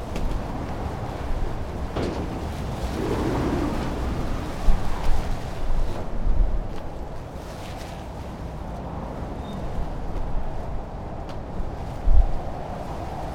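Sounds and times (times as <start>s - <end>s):
strong cold winter storm in Iceland: 0.0s - 13.3s
flying container in winter storm in Iceland: 2.8s - 5.1s.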